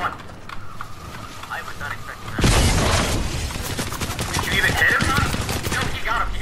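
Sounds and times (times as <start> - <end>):
people talking: 1.5 - 2.4, 4.4 - 6.4
rapid gunfire in a video game: 2.4 - 6.2.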